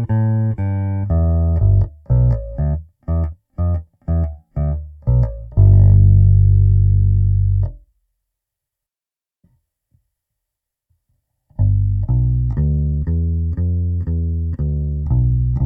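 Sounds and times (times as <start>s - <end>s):
Ibanez SRX 700 bass guitar simulation: 0.0s - 7.9s, 11.6s - 15.6s.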